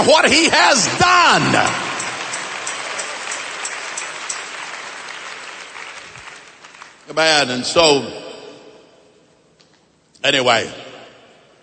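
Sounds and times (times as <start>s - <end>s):
speech: 0.0s - 1.9s, 7.1s - 8.2s, 10.2s - 10.8s
audience clapping hands: 1.3s - 7.2s.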